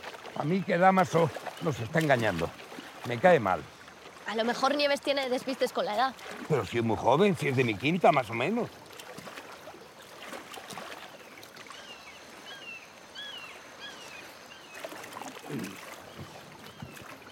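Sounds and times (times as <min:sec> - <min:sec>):
oars rowing a rowboat through water: 0:00.0 - 0:17.3
speech: 0:00.4 - 0:08.8
bird chirps: 0:11.7 - 0:14.8.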